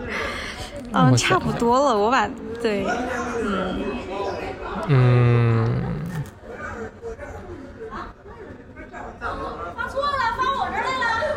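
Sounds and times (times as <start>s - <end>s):
speech: 0.9s - 3.9s, 4.8s - 5.6s
people chatting in the background: 0.9s - 11.3s.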